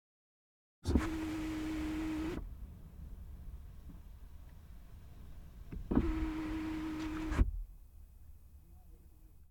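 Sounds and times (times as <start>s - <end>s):
Volvo XC60 window opening and closing: 0.8s - 2.6s, 5.6s - 7.6s.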